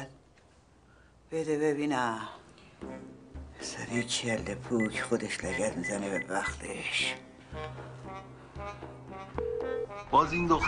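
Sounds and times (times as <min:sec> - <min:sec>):
speech: 0:01.3 - 0:10.6
phone ringing with an incoming call: 0:04.8 - 0:06.6, 0:09.4 - 0:10.0.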